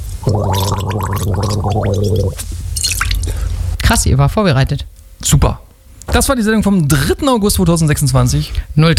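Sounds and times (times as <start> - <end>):
person gargling: 0.3 - 2.4
speech: 3.9 - 8.9.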